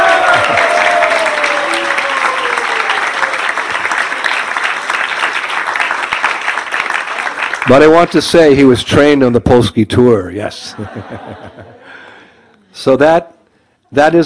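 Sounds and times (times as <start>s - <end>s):
crowd applause: 0.0s - 8.2s
speech: 7.7s - 12.0s, 12.7s - 13.3s, 13.9s - 14.2s
laughter: 10.6s - 12.0s.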